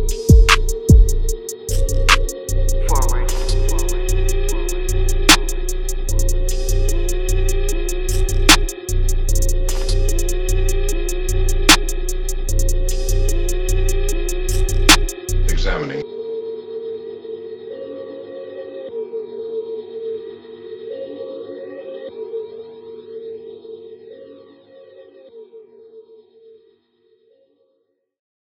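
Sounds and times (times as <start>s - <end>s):
808 bass in A sharp: 0.0s - 15.7s.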